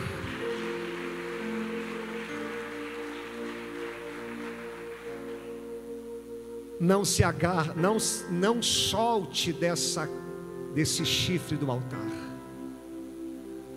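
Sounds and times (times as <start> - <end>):
audience applauding: 0.0 - 5.9
sustained keyboard chords: 0.0 - 13.7
speech: 6.8 - 10.2, 10.8 - 12.3.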